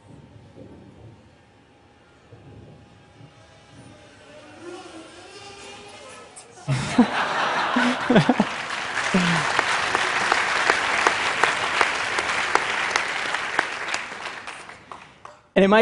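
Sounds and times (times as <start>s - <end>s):
fixed-wing delivery drone mechanical humming: 0.0s - 14.9s
speech: 6.7s - 7.3s, 8.1s - 8.5s, 15.6s - 15.8s
laughter: 6.7s - 13.3s.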